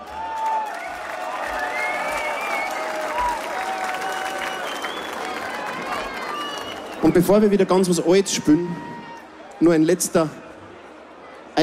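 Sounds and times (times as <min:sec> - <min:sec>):
audience applause: 0:00.0 - 0:07.9
whistles: 0:01.6 - 0:03.0, 0:04.1 - 0:05.4, 0:06.2 - 0:07.0
speech: 0:07.0 - 0:08.9, 0:09.6 - 0:10.4.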